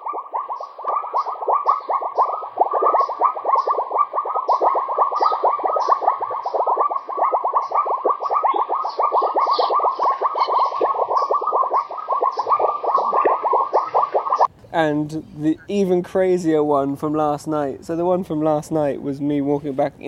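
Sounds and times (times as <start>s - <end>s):
frogs making strange popping noises: 0.0s - 14.5s
speech: 14.8s - 20.0s.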